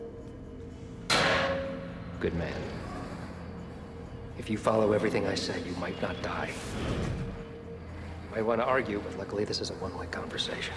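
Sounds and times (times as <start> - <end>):
low quiet hum: 0.0 - 10.7
banging on a metal pipe: 1.1 - 2.2
speech: 2.2 - 2.8, 4.4 - 7.2, 8.4 - 10.7.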